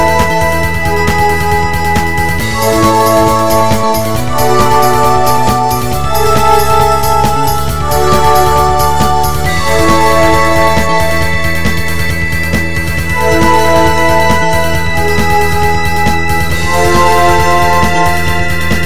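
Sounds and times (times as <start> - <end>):
drum and bass remix music: 0.0 - 18.8.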